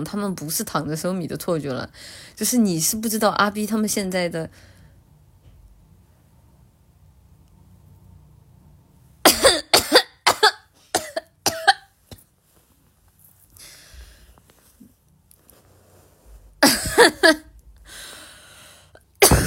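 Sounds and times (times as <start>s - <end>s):
speech: 0.0s - 4.7s
faint breathing: 2.0s - 2.4s, 4.5s - 5.0s, 13.6s - 14.6s, 17.8s - 19.0s
person coughing: 9.3s - 12.2s, 16.6s - 17.5s, 19.2s - 19.4s.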